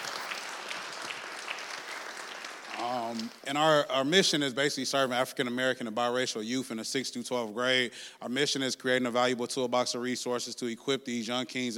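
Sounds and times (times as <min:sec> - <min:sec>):
audience applause: 0:00.0 - 0:03.4
speech: 0:02.8 - 0:11.7.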